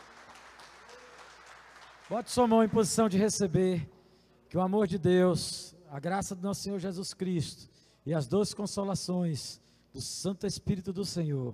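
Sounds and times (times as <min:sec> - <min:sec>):
audience applause: 0:00.0 - 0:02.6
speech: 0:02.1 - 0:11.5.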